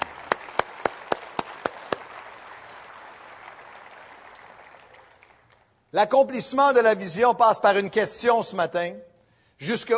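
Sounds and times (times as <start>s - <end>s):
audience applauding: 0.0s - 5.8s
speech: 5.9s - 9.9s.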